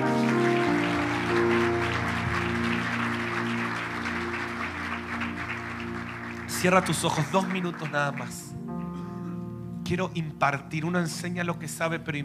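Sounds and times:
audience applause: 0.0s - 8.6s
sustained keyboard chords: 0.0s - 12.2s
speech: 6.6s - 8.7s, 9.9s - 12.2s.

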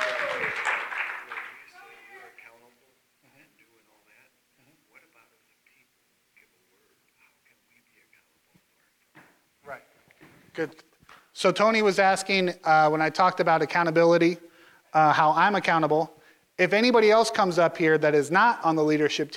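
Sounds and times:
audience clapping: 0.0s - 2.5s
speech: 10.6s - 19.3s.

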